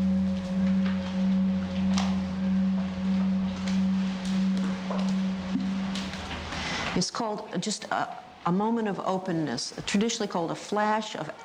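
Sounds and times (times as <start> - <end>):
gong being struck: 0.0 - 6.5
speech: 7.0 - 11.4.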